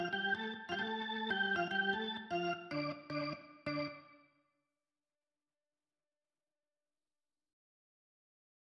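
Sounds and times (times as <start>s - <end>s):
organ: 0.0s - 4.2s.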